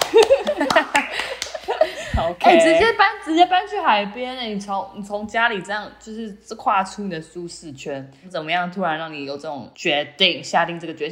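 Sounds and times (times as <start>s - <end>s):
hand clapping to cheer someone on: 0.0s - 2.0s
laughter: 0.0s - 2.8s
speech: 2.5s - 11.1s.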